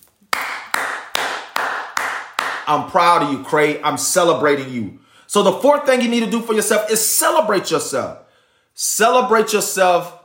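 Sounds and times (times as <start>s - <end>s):
hand clapping: 0.0s - 2.9s
speech: 2.7s - 10.2s.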